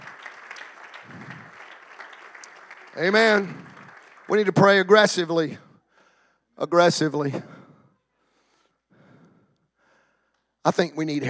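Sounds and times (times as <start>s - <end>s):
audience clapping: 0.0s - 5.5s
speech: 3.0s - 3.7s, 4.3s - 5.6s, 6.6s - 7.5s, 10.6s - 11.2s.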